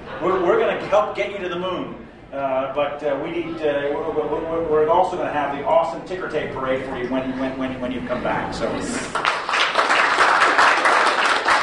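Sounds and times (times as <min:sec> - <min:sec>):
speech: 0:00.2 - 0:09.3
audience applause at a public event in Wilmington, Delaware: 0:09.1 - 0:11.6.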